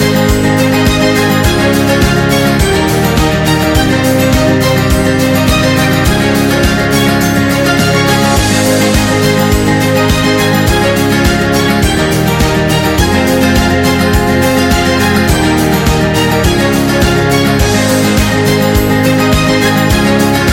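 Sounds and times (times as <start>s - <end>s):
acoustic guitar: 0.0s - 20.5s.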